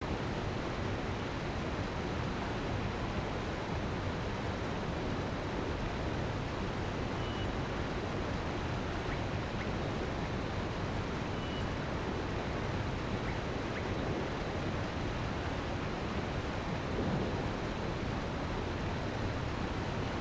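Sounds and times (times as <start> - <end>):
waterfall ambience: 0.0 - 20.1.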